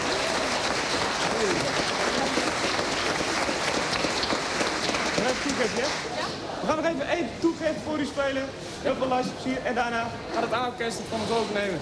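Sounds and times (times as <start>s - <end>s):
audience applause: 0.0s - 6.2s
speech: 5.6s - 11.8s.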